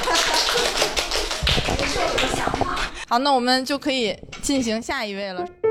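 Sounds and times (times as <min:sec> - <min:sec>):
friends clapping: 0:00.0 - 0:03.0
speech: 0:03.1 - 0:05.6.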